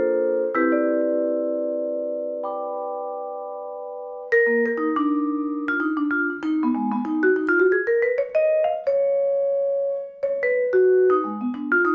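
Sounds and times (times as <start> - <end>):
vibraphone recorded in Blumlein stereo: 0.0 - 11.9.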